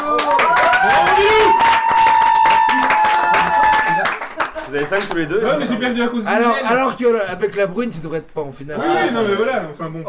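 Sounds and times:
audience applause: 0.0 - 5.2
speech: 4.9 - 10.0.

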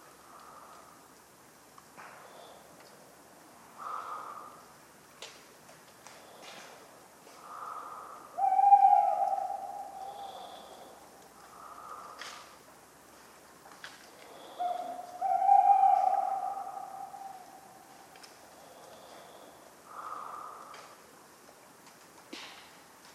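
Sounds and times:
tawny owl hooting: 7.4 - 12.2, 14.3 - 18.1.

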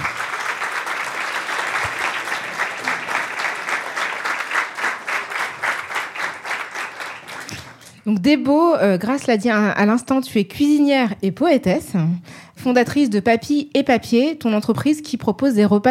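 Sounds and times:
audience applauding: 0.0 - 8.0
speech: 8.0 - 15.8.

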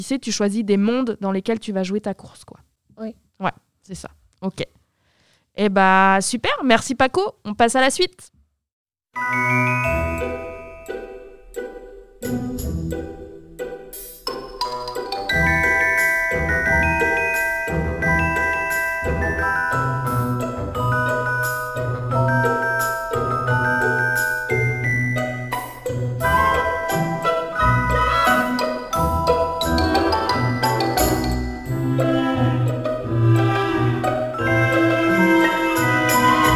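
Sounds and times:
speech: 0.0 - 4.8, 5.6 - 8.3, 9.2 - 11.0, 12.2 - 13.2
bright upbeat video game soundtrack music: 9.3 - 36.5.

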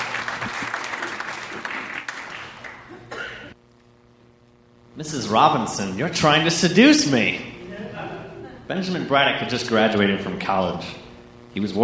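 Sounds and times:
audience applauding: 0.0 - 3.1
faint hum: 0.0 - 11.8
speech: 5.0 - 7.5, 8.7 - 11.0, 11.6 - 11.8
laughter: 7.6 - 9.0.

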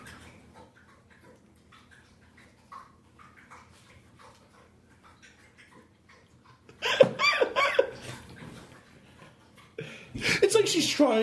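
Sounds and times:
pet drinking water: 0.0 - 11.2
speech: 10.7 - 11.2.

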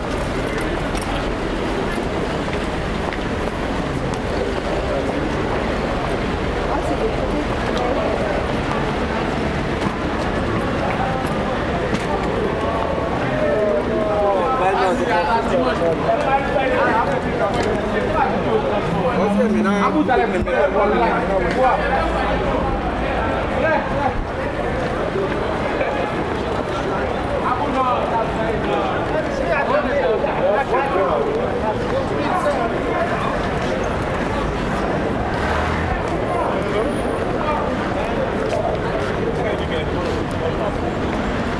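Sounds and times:
low traffic rumble in Paris: 0.0 - 41.5
murmur of many voices on a Paris street: 0.0 - 41.5.

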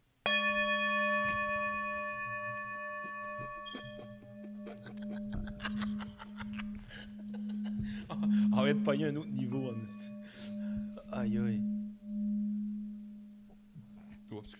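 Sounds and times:
Tibetan singing bowl struck like a gong: 0.2 - 14.5
people laughing: 1.2 - 11.0
speech: 8.7 - 10.0, 11.2 - 11.7.

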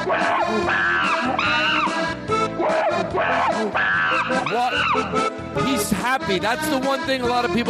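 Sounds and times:
chimpanzee screaming: 0.0 - 5.3
speech: 0.5 - 0.8, 3.6 - 7.6.

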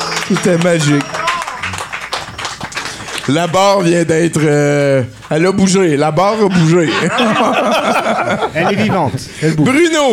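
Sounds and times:
crowd clapping: 0.0 - 5.9
speech: 0.3 - 1.2, 3.3 - 10.1
laughter: 6.2 - 9.2.

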